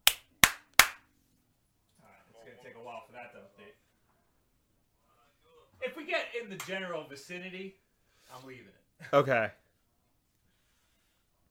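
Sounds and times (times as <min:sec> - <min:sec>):
single hand clap: 0:00.0 - 0:01.1
speech: 0:05.8 - 0:09.6.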